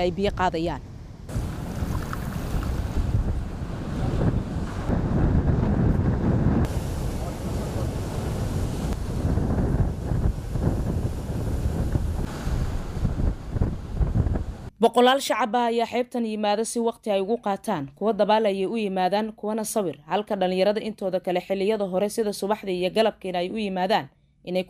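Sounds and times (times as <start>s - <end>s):
speech: 0.0s - 0.9s, 14.8s - 24.6s
gusting wind on a beach in Mogadishu: 0.0s - 14.7s
waves breaking on a beach in Mogadishu: 1.3s - 14.7s.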